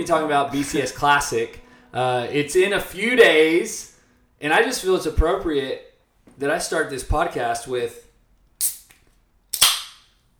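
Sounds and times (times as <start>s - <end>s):
speech: 0.0s - 8.0s
C4 Tropical Blast carbonated energy drink can being opened: 8.6s - 10.0s.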